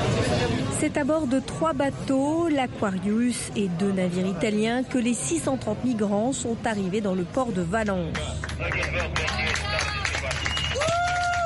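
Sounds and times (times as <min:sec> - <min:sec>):
hubbub of voices: 0:00.0 - 0:11.4
speech: 0:00.8 - 0:09.4
crowd applauding as migrants disembark: 0:08.1 - 0:11.4
sustained whistling tone: 0:10.4 - 0:10.9.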